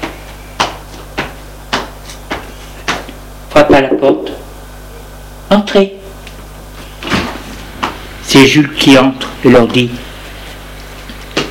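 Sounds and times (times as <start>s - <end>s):
footsteps in a corridor: 0.0s - 3.2s, 6.8s - 8.1s, 8.9s - 11.4s
speech: 3.6s - 4.4s, 5.5s - 6.0s, 8.3s - 10.1s.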